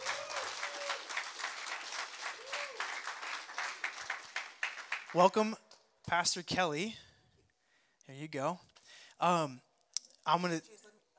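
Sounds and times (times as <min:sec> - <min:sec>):
church audience applause welcoming a guest pastor: 0:00.0 - 0:05.4
speech: 0:05.1 - 0:07.0, 0:08.1 - 0:09.7, 0:10.3 - 0:10.8.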